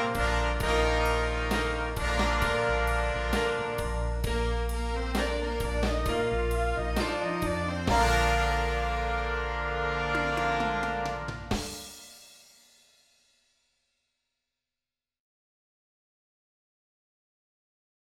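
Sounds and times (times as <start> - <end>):
horns in fifths: 0.0 - 12.0.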